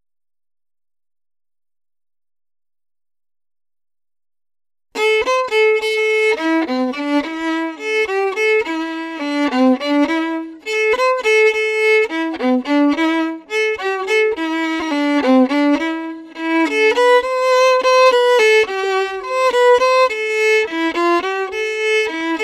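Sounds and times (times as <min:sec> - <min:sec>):
violin: 0:04.9 - 0:22.4.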